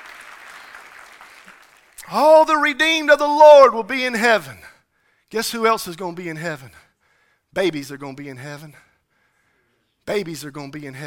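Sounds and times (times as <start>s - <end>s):
clapping: 0.0s - 2.1s
speech: 2.1s - 4.6s, 5.3s - 6.8s, 7.5s - 8.9s, 10.1s - 11.0s.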